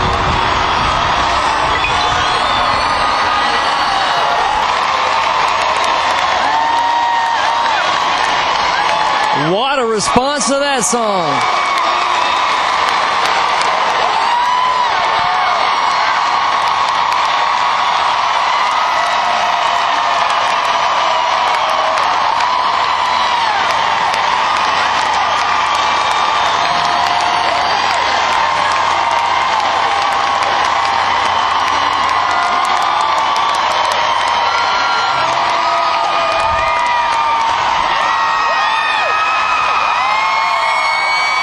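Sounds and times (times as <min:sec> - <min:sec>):
huge stadium concert crowd cheering and screaming: 0:00.0 - 0:41.4
speech: 0:10.0 - 0:11.6.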